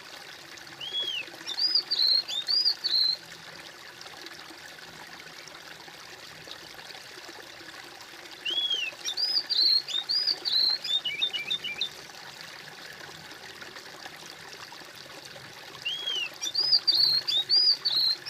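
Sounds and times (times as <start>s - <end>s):
bird whistled song: 0.8s - 3.2s, 8.4s - 12.0s, 15.9s - 18.2s.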